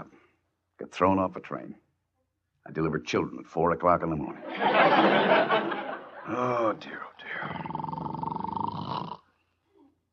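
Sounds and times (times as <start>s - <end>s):
speech: 0.8s - 1.8s, 2.6s - 5.7s, 6.3s - 7.8s
laughter: 4.4s - 6.8s
snoring: 7.4s - 9.3s.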